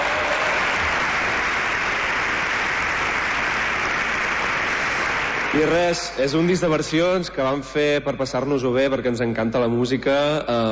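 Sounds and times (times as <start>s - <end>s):
audience applause: 0.0s - 6.0s
speech: 5.5s - 10.6s.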